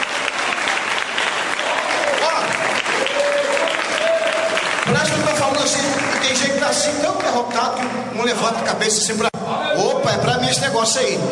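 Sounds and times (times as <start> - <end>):
church audience applauding: 0.0 - 8.0
speech: 5.1 - 9.3, 10.0 - 11.3.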